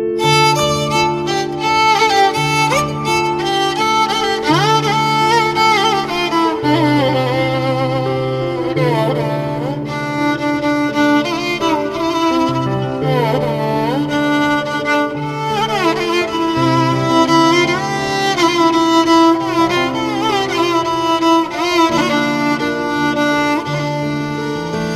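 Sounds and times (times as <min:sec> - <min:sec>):
nostalgic violin: 0:00.2 - 0:24.9.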